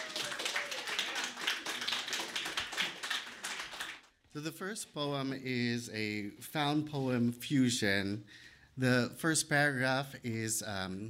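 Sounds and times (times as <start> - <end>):
audience clapping: 0.0 - 4.2
speech: 4.4 - 11.0.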